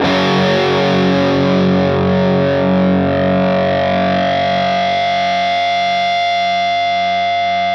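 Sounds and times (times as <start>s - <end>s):
fuzz guitar with vibrato: 0.0s - 7.7s.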